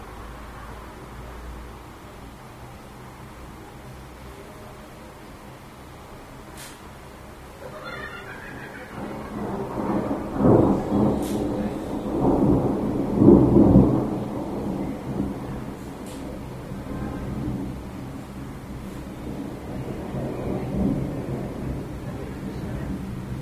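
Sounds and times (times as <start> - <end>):
laughter: 7.6 - 10.3
thunder heard from home street: 8.2 - 23.4.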